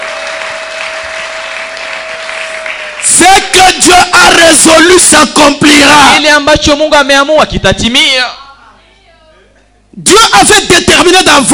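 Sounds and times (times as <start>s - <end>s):
audience applause: 0.0s - 3.2s
speech: 3.2s - 8.4s, 10.0s - 11.5s.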